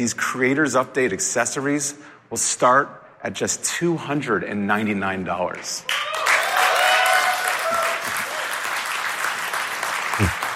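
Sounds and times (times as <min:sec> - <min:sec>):
speech: 0:00.0 - 0:06.1
audience applause: 0:05.9 - 0:10.5.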